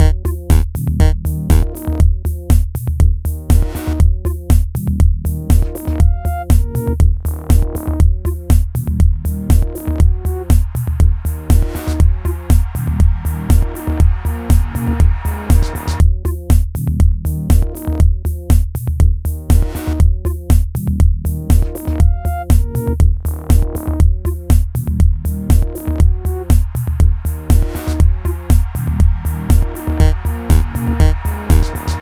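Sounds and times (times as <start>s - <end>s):
sixteen bar music loop: 0.0s - 32.0s.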